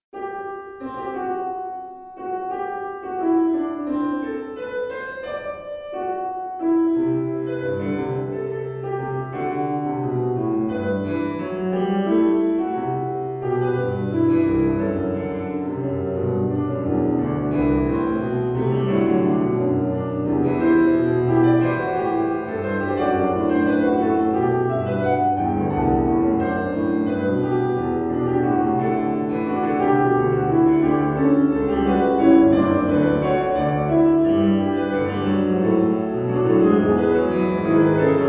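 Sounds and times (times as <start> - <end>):
fugue: 0.2 - 38.2.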